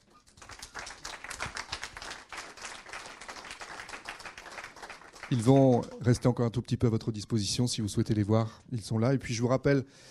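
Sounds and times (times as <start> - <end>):
audience applause: 0.4 - 5.9
speech: 5.3 - 10.0.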